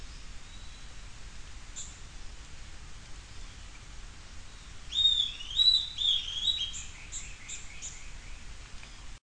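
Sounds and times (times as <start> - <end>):
bird singing bright whistled slurred phrases: 4.9 - 8.4.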